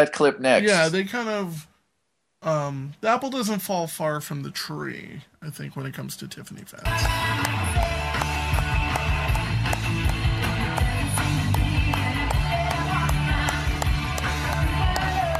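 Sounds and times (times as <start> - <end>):
speech: 0.0 - 1.7, 2.4 - 7.9
hands clapping: 6.8 - 15.3.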